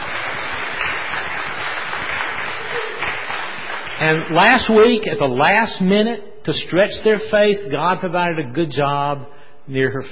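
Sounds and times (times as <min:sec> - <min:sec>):
audience clapping: 0:00.0 - 0:05.0
speech: 0:04.0 - 0:10.0.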